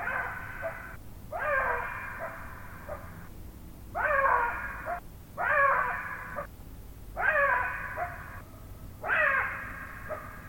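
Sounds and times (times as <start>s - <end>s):
Black-backed Jackal calling: 0.0s - 3.1s, 4.0s - 6.5s, 7.2s - 8.4s, 9.0s - 10.4s.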